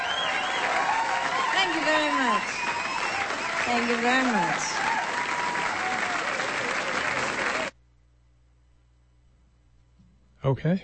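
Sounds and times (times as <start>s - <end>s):
crowd applause: 0.0s - 7.7s
speech: 1.8s - 2.7s, 3.7s - 5.1s, 10.4s - 10.8s.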